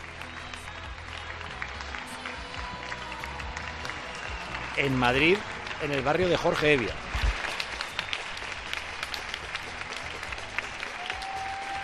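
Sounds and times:
balcony applause for healthcare workers in Spain: 0.0 - 11.8
speech: 4.8 - 7.0.

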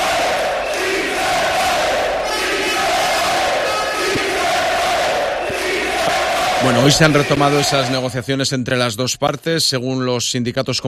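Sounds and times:
striking workers chanting a slogan: 0.0 - 8.1
speech: 6.6 - 10.8.

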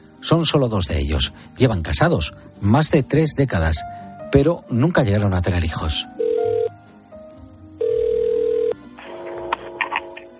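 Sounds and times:
speech: 0.2 - 6.2
phone ringback tone on an outgoing call: 6.2 - 6.7, 7.8 - 10.3.

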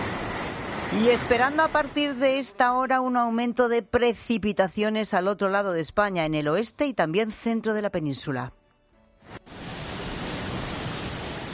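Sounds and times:
river Eresma in flood: 0.0 - 2.6, 9.5 - 11.5
speech: 0.9 - 8.6.

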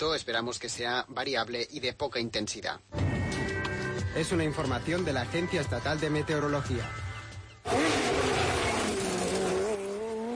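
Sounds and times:
speech: 0.0 - 3.5, 4.2 - 7.0
rally car engines roaring: 7.7 - 10.3.

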